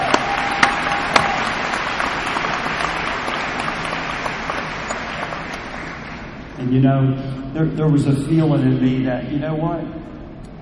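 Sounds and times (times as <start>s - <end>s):
crowd clapping: 0.0s - 6.6s
speech: 6.7s - 10.0s.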